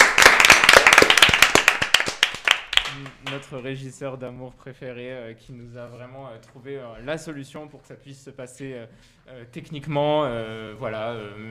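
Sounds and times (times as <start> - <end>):
audience clapping: 0.0 - 3.5
speech: 3.0 - 11.4.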